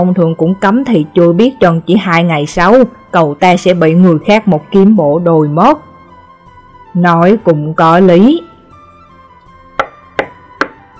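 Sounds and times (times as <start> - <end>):
speech: 0.0 - 5.9, 6.9 - 8.5
sudden knock on a door: 9.8 - 10.8.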